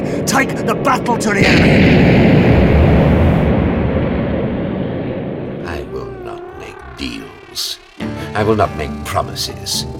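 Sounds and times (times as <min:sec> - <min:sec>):
incendiary bomb explosion during air raid: 0:00.1 - 0:08.0
speech: 0:00.2 - 0:02.8, 0:08.4 - 0:09.9.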